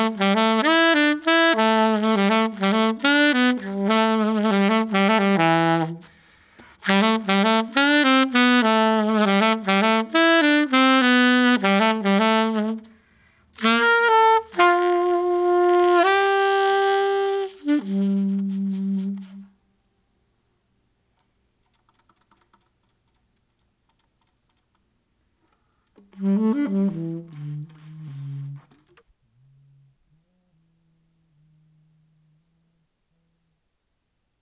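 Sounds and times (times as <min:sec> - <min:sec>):
saxophone: 0:00.0 - 0:19.7, 0:26.0 - 0:32.4.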